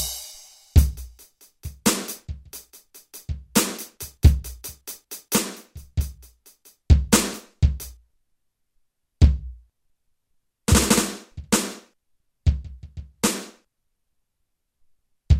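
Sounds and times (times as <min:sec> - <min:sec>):
electric drums: 0:00.0 - 0:08.0, 0:09.2 - 0:09.6, 0:10.7 - 0:11.9, 0:12.5 - 0:13.6.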